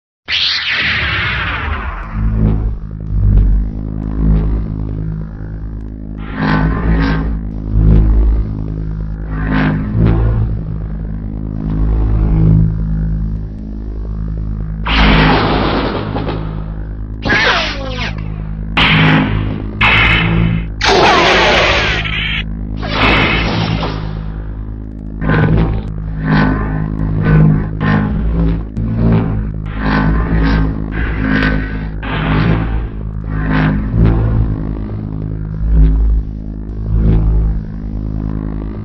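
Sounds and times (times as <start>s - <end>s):
lightsaber humming: 0.3s - 38.8s.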